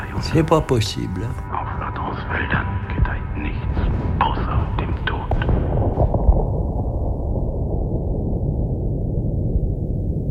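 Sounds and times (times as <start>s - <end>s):
speech: 0.2s - 1.7s, 2.3s - 3.8s
distant artillery cannon fire: 3.7s - 10.2s.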